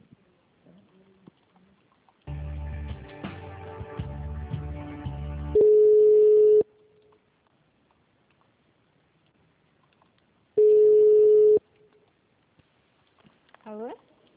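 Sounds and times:
telephone line beeps while a call is transferred: 5.6s - 6.7s, 10.6s - 11.6s.

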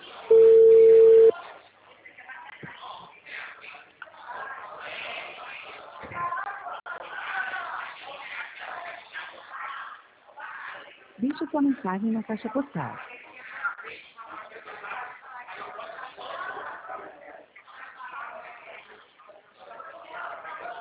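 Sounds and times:
telephone tone as a call is being dialed: 0.3s - 1.3s
speech: 11.6s - 13.2s.

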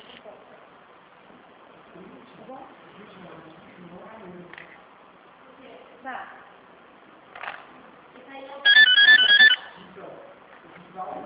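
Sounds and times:
telephone warbling electronic ringtone: 8.6s - 9.8s.

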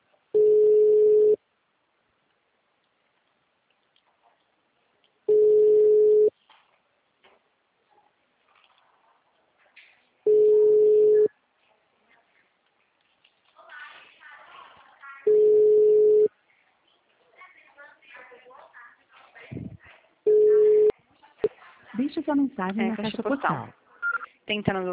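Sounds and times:
faint scattered noises: 0.0s - 24.9s
ringback tone of an outgoing phone call: 0.4s - 1.4s, 5.3s - 6.3s, 10.3s - 11.3s, 15.3s - 16.3s, 20.3s - 20.9s
speech: 22.3s - 23.8s, 24.5s - 24.9s.

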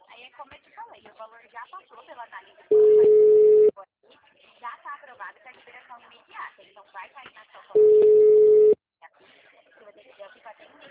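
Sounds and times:
speech: 0.4s - 8.2s
telephone busy tone after a dropped call: 2.7s - 3.7s, 7.8s - 8.8s.

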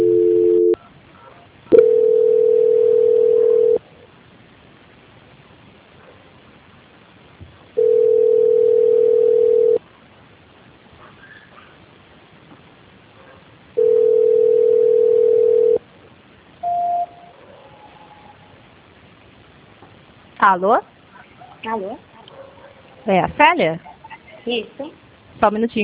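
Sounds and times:
telephone tone during call transfer: 0.0s - 0.8s, 1.7s - 3.8s, 7.8s - 9.8s, 13.8s - 15.8s, 16.6s - 17.3s
faint telephone line hiss: 0.0s - 25.8s
speech: 20.5s - 20.9s, 21.6s - 22.1s, 23.1s - 25.8s.

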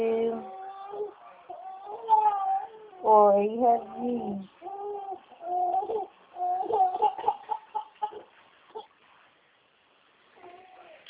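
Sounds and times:
baby crying: 0.3s - 3.1s, 3.9s - 8.9s, 10.4s - 11.0s
speech: 3.1s - 4.6s.

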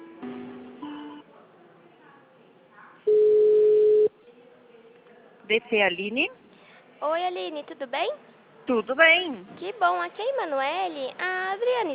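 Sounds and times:
telephone line tone after a dropped call: 3.1s - 4.1s
speech: 5.5s - 6.4s, 7.0s - 11.9s.

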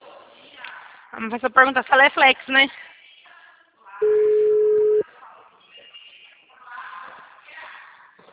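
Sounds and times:
speech: 1.1s - 2.9s
dropped phone call beep: 4.0s - 5.0s
soft voices talking on the phone line: 4.0s - 5.1s.

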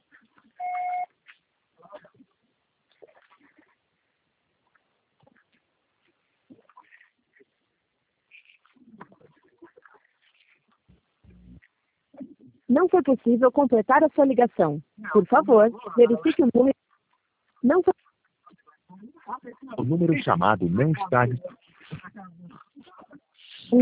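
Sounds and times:
Brazilian phone voicemail beep: 0.6s - 1.1s
speech: 12.7s - 16.8s, 19.9s - 21.6s.

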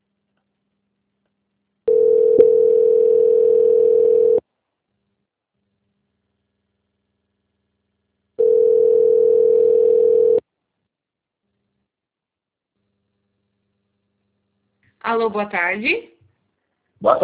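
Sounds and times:
telephone line tone while a call is being transferred: 1.9s - 4.4s, 8.4s - 10.4s
speech: 15.1s - 16.2s, 17.0s - 17.2s.

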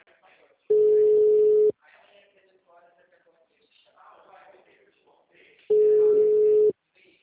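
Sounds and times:
ringback tone on an unanswered phone call: 0.7s - 1.7s, 5.7s - 6.7s.

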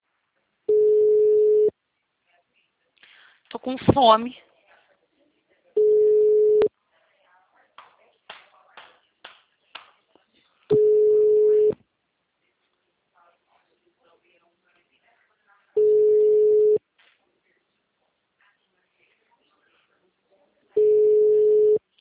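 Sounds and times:
ringing tone of an unanswered telephone call: 0.7s - 1.7s, 5.8s - 6.7s, 10.7s - 11.7s, 15.8s - 16.8s, 20.8s - 21.8s
speech: 3.5s - 4.5s.

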